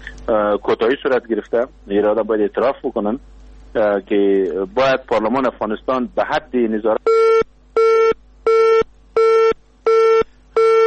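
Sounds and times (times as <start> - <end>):
speech: 0.3 - 7.4
telephone busy tone after a dropped call: 7.1 - 10.8.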